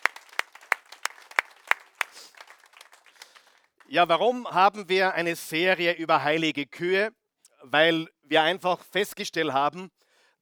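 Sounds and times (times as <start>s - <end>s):
audience applause: 0.0s - 3.9s
speech: 3.9s - 10.4s.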